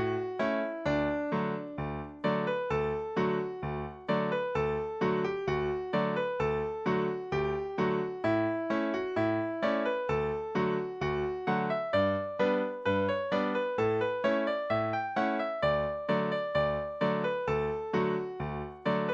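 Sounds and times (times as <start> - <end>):
music track at 65 bpm: 0.0 - 19.1.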